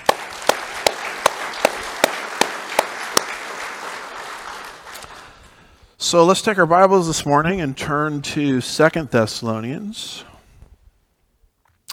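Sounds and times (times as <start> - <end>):
audience applause: 0.0 - 5.7
speech: 6.1 - 10.3.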